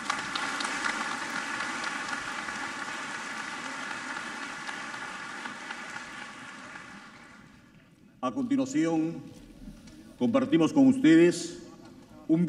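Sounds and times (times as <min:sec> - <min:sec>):
steady dense crowd applause: 0:00.0 - 0:07.8
speech: 0:08.2 - 0:09.4, 0:10.2 - 0:11.6, 0:12.3 - 0:12.4.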